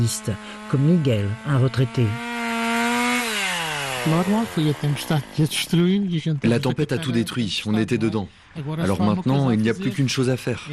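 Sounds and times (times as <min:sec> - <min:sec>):
speech: 0:00.0 - 0:02.3, 0:04.0 - 0:10.7
saws cutting storm-felled trees: 0:00.0 - 0:06.6.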